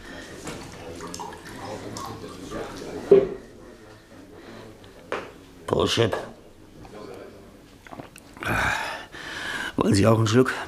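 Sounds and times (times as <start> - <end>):
faint murmuring voices: 0.0 - 8.6
whisky pouring into a glass: 0.3 - 3.3
speech: 5.8 - 6.3, 9.9 - 10.6.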